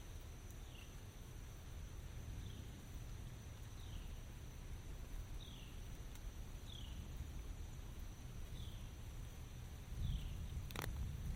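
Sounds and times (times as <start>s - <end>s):
rain: 0.0s - 11.3s
bird repeating a short falling chirp: 3.6s - 4.2s, 5.4s - 6.0s, 6.6s - 9.0s, 10.0s - 10.8s.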